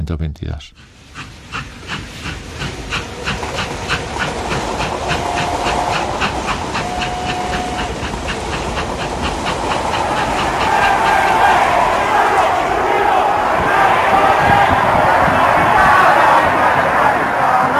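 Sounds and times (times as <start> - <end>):
steam locomotive chugging: 0.8 - 17.7.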